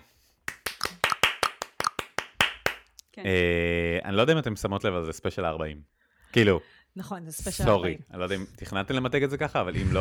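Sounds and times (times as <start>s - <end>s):
audience clapping: 0.4s - 3.0s
speech: 3.2s - 9.9s.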